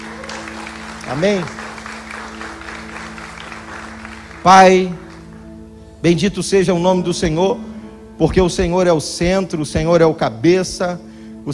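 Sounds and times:
audience applause: 0.0s - 5.3s
low sustained organ-like hum: 0.0s - 11.5s
speech: 1.1s - 1.6s, 4.4s - 5.0s, 6.0s - 11.5s.

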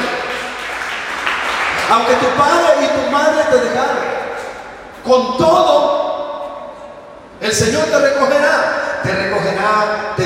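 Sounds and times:
audience clapping hands: 0.0s - 2.7s
speech: 1.9s - 4.2s, 5.0s - 6.0s, 7.4s - 10.2s.

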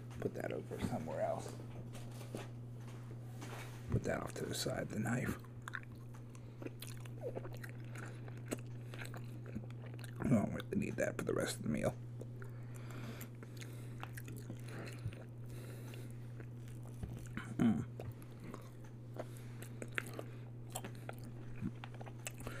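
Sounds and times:
speech: 0.2s - 2.6s, 3.9s - 5.5s, 10.7s - 12.0s
person chewing a thick piece of chicken: 5.4s - 10.6s, 12.1s - 22.5s.

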